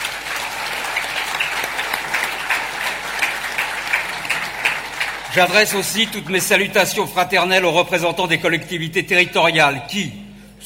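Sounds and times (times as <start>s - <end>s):
audience applause: 0.0s - 6.4s
speech: 5.3s - 10.6s.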